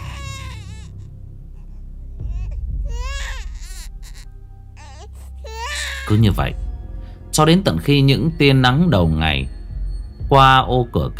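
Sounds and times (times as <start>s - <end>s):
baby crying shrilly: 0.0s - 1.0s, 2.3s - 6.2s
speech: 6.1s - 6.6s, 7.4s - 9.6s, 10.3s - 11.1s.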